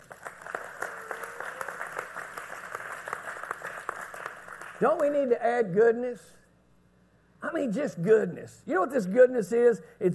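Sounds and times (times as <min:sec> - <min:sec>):
audience hand clapping: 0:00.0 - 0:05.4
speech: 0:04.8 - 0:06.4, 0:07.5 - 0:10.1.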